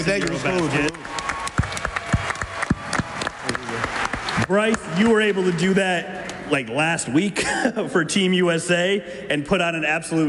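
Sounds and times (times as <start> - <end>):
speech: 0.0 - 1.3, 4.5 - 10.2
audience applause honoring bronze medal winning players: 0.0 - 6.1.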